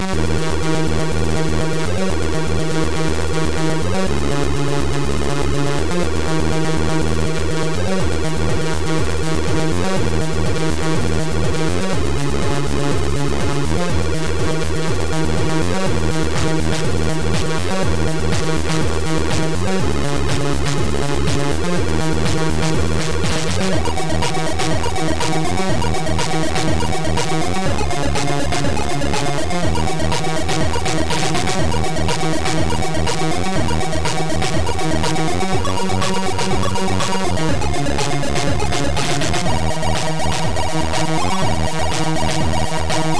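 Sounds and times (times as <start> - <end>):
fast enveloped song: 0.1 - 43.1.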